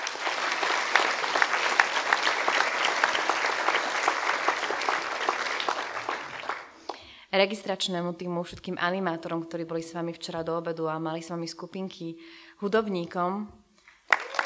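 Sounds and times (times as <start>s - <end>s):
audience applause: 0.0s - 6.9s, 14.0s - 14.4s
speech: 7.3s - 13.6s.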